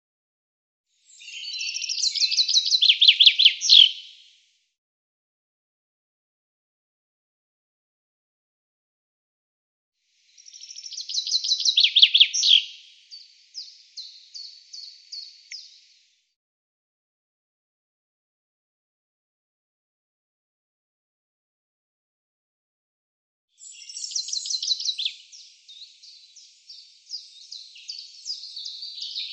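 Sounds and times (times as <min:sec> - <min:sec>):
bird chirping in rapid high sharp trilling runs: 0:01.0 - 0:04.4, 0:10.3 - 0:16.1, 0:23.6 - 0:29.3.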